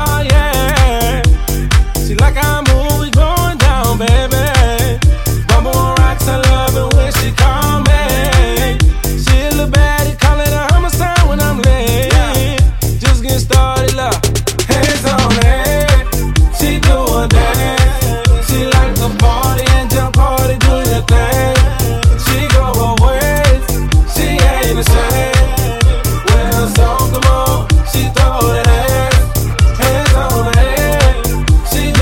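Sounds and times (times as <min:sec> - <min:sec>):
funk bootleg music: 0:00.0 - 0:32.0.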